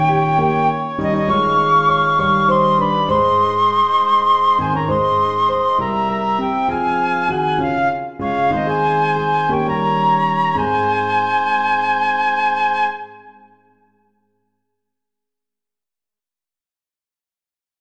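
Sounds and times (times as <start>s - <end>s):
piano: 0.0s - 13.9s.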